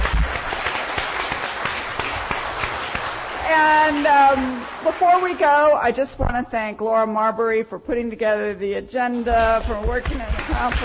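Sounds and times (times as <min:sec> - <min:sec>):
audience applause: 0:00.0 - 0:05.7, 0:10.3 - 0:10.8
speech: 0:03.9 - 0:10.8.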